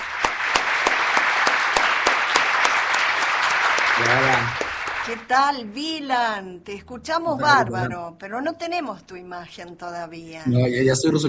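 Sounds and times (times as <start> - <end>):
audience applause welcoming a guest: 0.0 - 5.3
speech: 4.0 - 11.2.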